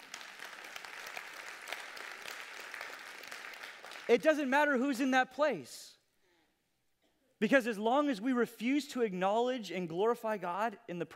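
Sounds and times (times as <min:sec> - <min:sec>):
audience applause: 0:00.0 - 0:04.1
speech: 0:04.1 - 0:05.9, 0:07.4 - 0:11.1.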